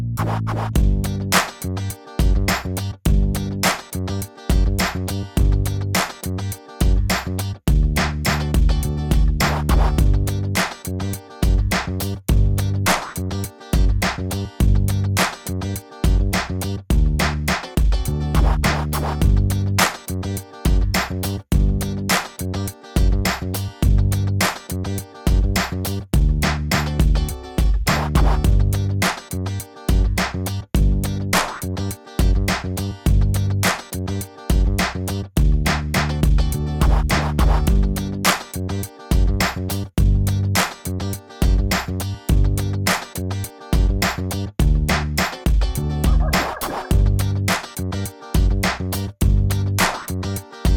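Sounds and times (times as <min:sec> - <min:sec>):
rap instrumental beat: 0:00.2 - 0:50.7.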